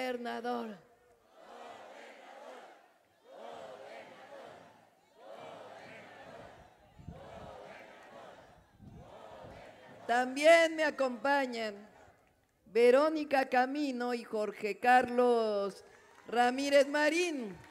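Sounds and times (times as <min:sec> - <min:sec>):
speech: 0:00.1 - 0:00.9, 0:10.1 - 0:11.9, 0:12.7 - 0:17.6
large crowd chanting in unison: 0:01.2 - 0:12.2.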